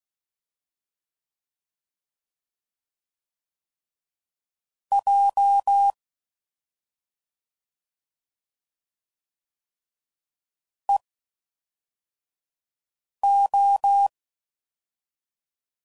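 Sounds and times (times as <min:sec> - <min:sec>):
Morse code CW code groups at 5 WPM: 0:05.0 - 0:06.0, 0:13.2 - 0:14.1.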